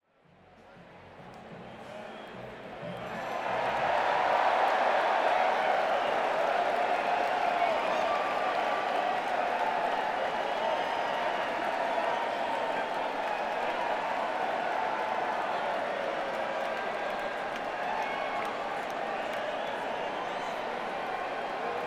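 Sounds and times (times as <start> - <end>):
crowd at Madison Square Garden: 0.0 - 21.8.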